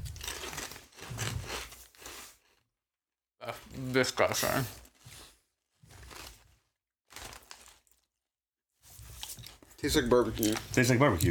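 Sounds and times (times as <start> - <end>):
someone biting into crisps: 0.0 - 2.2, 7.1 - 8.1, 9.1 - 11.2
speech: 3.5 - 4.8, 9.8 - 11.2.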